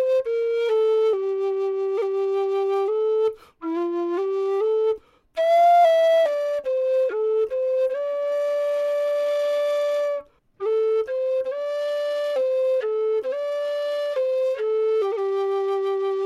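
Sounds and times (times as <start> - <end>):
low whistle in C playing a song: 0.0 - 16.2.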